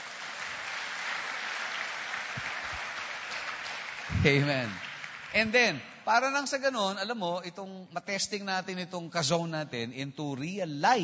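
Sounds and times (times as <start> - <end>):
audience at a faith gathering clapping vigorously: 0.0 - 6.0
speech: 4.2 - 11.0.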